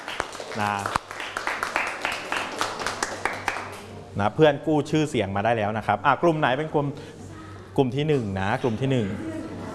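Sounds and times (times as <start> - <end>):
audience clapping: 0.0 - 4.0
speech: 0.6 - 1.0, 4.2 - 7.2, 7.8 - 9.4.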